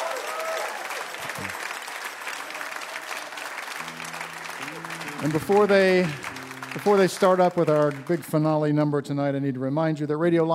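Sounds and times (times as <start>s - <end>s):
audience applause: 0.0s - 8.8s
low voice-like murmurs: 1.2s - 1.6s
speech: 5.2s - 6.2s, 6.8s - 10.5s.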